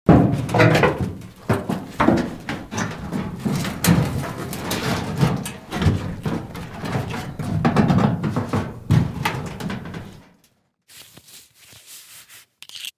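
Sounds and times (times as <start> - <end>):
clothes handled: 0.1 - 10.3.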